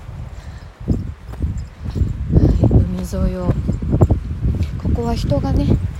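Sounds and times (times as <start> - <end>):
footsteps crunching over stones along the seaside in Scotland: 0.8 - 4.8
speech: 5.1 - 5.9.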